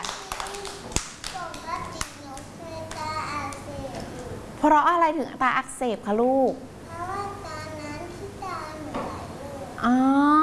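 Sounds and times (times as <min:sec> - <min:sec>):
children clapping hands: 0:00.0 - 0:03.7
speech: 0:04.6 - 0:06.7, 0:09.8 - 0:10.3.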